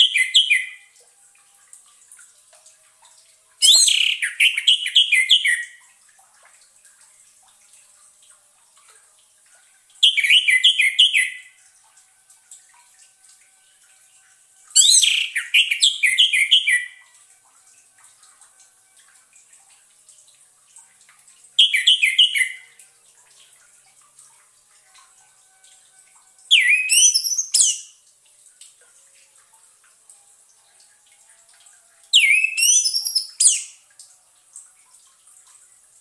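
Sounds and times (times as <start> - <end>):
orange-headed thrush song: 0.0 - 0.9, 3.6 - 5.8, 10.0 - 11.6, 14.8 - 17.0, 21.6 - 22.7, 26.5 - 28.0, 32.1 - 33.8
faint dripping: 0.0 - 35.9.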